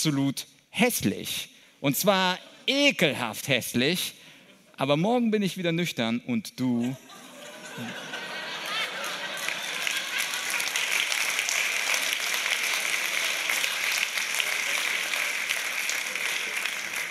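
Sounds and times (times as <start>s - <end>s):
speech: 0.0s - 4.2s, 4.8s - 7.2s, 7.8s - 8.1s
laughter: 6.8s - 11.1s
audience applause: 7.8s - 17.0s.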